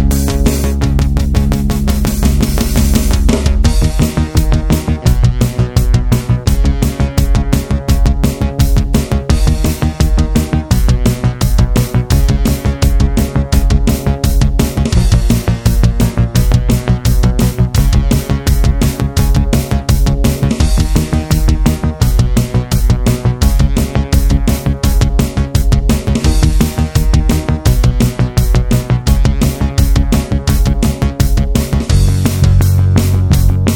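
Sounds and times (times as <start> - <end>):
analog synth blast: 0.0 - 33.7.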